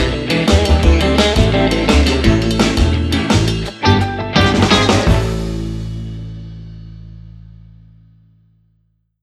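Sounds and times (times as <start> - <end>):
cheerful entertainment music with dual solo: 0.0 - 5.7.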